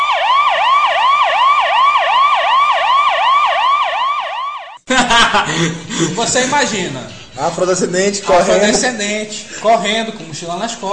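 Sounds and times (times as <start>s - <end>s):
police car siren passing along a main avenue in a city centre: 0.0s - 4.8s
laughter: 4.9s - 10.6s
speech: 5.3s - 10.9s.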